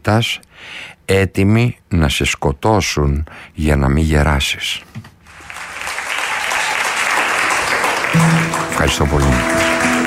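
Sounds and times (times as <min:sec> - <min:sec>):
speech: 0:00.0 - 0:05.1, 0:08.1 - 0:09.7
audience applauding: 0:05.3 - 0:10.0.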